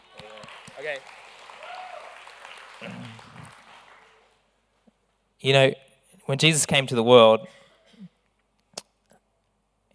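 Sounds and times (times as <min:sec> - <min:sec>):
audience clapping: 0:00.0 - 0:04.5
speech: 0:00.8 - 0:01.2, 0:02.8 - 0:03.1, 0:05.4 - 0:07.6.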